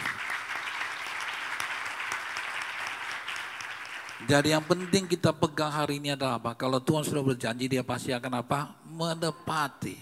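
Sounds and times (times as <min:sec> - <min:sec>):
audience applause: 0:00.0 - 0:05.2
speech: 0:04.2 - 0:10.0.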